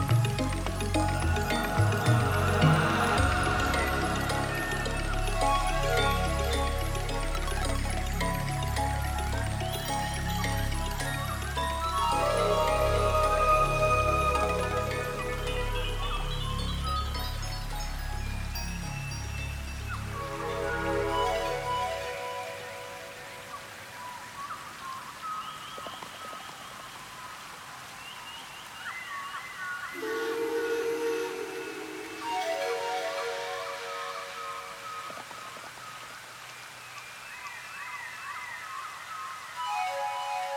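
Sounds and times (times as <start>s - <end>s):
ambient music: 0.0s - 23.9s, 30.0s - 35.8s, 39.6s - 40.5s.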